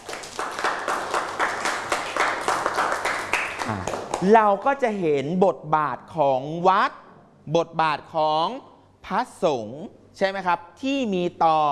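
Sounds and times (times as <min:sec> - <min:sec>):
group clapping hands: 0:00.0 - 0:04.6
speech: 0:03.7 - 0:11.7.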